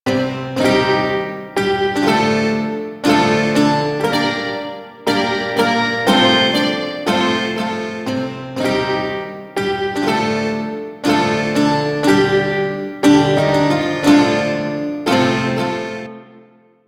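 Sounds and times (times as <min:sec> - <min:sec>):
shawzin bard music: 0:00.1 - 0:16.1.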